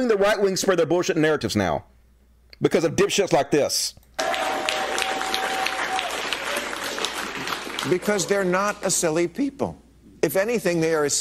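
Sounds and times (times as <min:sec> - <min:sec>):
speech: 0:00.0 - 0:01.9, 0:02.6 - 0:04.5, 0:07.8 - 0:11.1
audience clapping: 0:04.2 - 0:09.0.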